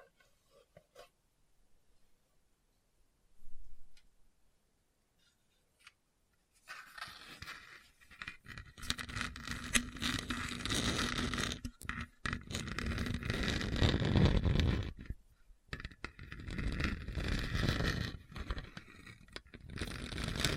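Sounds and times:
scratching hard bumpy surface: 6.6s - 20.5s.

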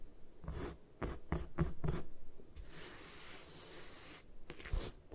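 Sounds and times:
gym chalk crushed and crumbled: 0.4s - 2.0s, 2.6s - 5.0s.

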